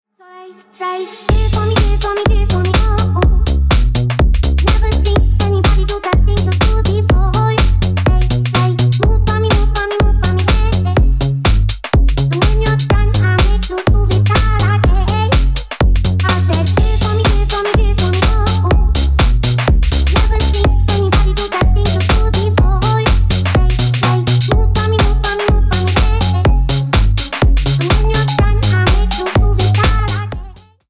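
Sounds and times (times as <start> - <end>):
remix music: 1.3 - 30.8.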